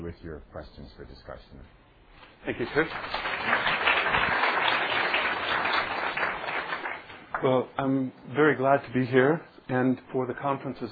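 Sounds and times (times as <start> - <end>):
speech: 0.1 - 1.8, 2.4 - 6.0, 7.4 - 10.8
class audience applauding a guest speaker: 2.5 - 7.6.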